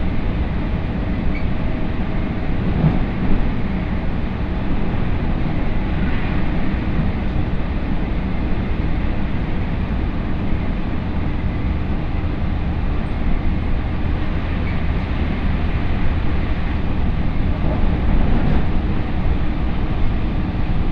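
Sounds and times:
Tokaido Line local train rumble and rattle: 0.0s - 20.9s
Tokaido Line local train squeals and clanks: 0.6s - 3.9s, 13.0s - 19.5s.

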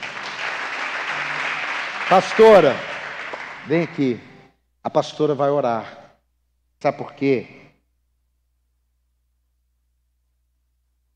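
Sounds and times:
audience applause: 0.0s - 4.0s
speech: 2.1s - 2.9s, 3.6s - 6.0s, 6.8s - 7.6s.

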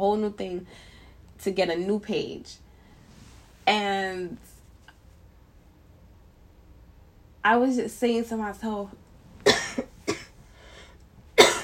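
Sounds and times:
speech: 0.0s - 2.6s, 3.7s - 4.5s, 7.4s - 9.0s
person coughing after choking on saliva: 9.4s - 10.4s, 11.4s - 11.6s.

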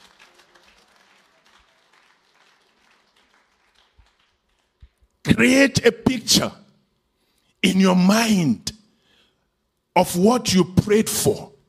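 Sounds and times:
audience clapping: 0.0s - 5.2s
speech: 5.4s - 6.6s, 7.6s - 8.8s, 10.0s - 11.5s.

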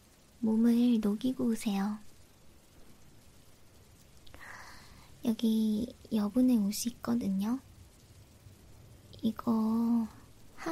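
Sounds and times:
rain falling: 0.0s - 10.7s
speech: 0.4s - 2.1s, 5.2s - 7.7s, 9.2s - 10.7s.

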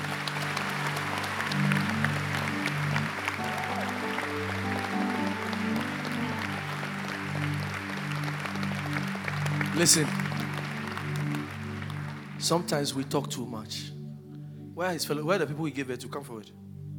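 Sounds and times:
crowd clapping: 0.0s - 13.1s
droning musical backing with sustained tones: 0.0s - 16.9s
speech: 9.8s - 10.2s, 12.5s - 13.9s, 14.8s - 16.6s.

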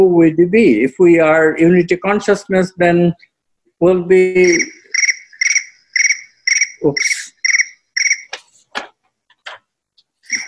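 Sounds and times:
speech: 0.0s - 4.8s, 6.8s - 7.2s
mobile phone ringing: 4.4s - 8.4s, 10.3s - 10.4s.

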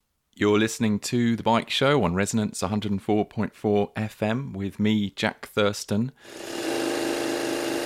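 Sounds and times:
speech: 0.4s - 6.7s
sewing machine running in the Cyclodelic clothing workshop: 6.3s - 7.8s.

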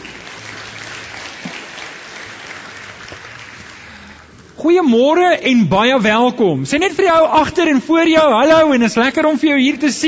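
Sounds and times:
audience applause for the band: 0.0s - 4.6s
speech: 4.6s - 10.0s.

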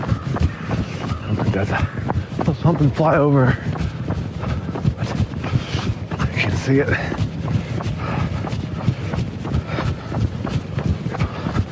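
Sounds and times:
constant rushing background: 0.0s - 11.6s
footfalls of a person running: 0.0s - 11.6s
speech: 1.6s - 3.7s, 6.7s - 7.2s.

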